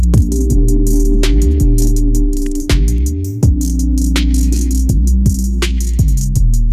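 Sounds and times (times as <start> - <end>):
groove ringtone: 0.2 - 6.6.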